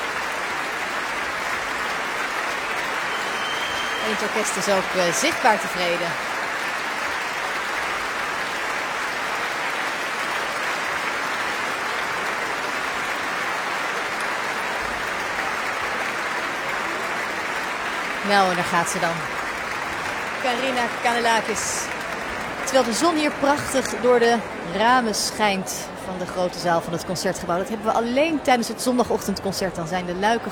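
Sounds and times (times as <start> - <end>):
concert audience applauding: 0.0 - 30.4
concert audience whistling: 2.3 - 7.3
speech: 4.0 - 6.3, 18.3 - 19.4, 20.4 - 22.0, 22.7 - 30.4.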